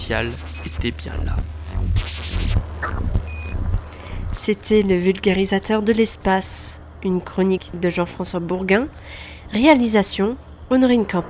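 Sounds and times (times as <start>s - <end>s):
warbling sweeping noise: 0.0s - 4.4s
low rumble: 0.0s - 5.7s
Sputnik 1 satellite radio transmitter beeping: 0.0s - 6.3s
speech: 0.1s - 3.1s, 4.4s - 11.2s.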